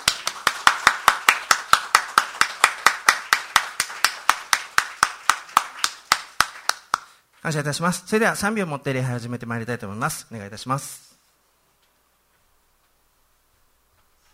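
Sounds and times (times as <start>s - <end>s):
audience clapping hands: 0.0s - 7.2s
speech: 7.4s - 11.0s.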